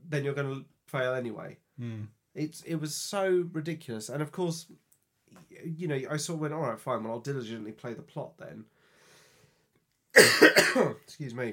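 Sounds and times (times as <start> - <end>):
speech: 0.1 - 8.8, 10.1 - 11.5
person coughing from a lingering cold: 10.2 - 11.0
throat clearing: 10.2 - 11.0.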